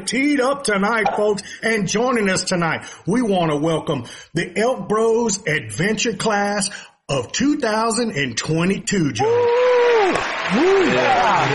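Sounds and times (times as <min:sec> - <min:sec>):
speech: 0:00.0 - 0:11.5
coaches applauding: 0:09.2 - 0:11.5.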